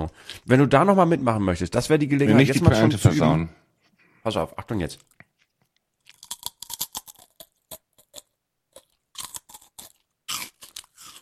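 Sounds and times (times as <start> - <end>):
speech: 0.1 - 3.6, 4.2 - 5.1
crunching a potato chip: 6.0 - 11.1.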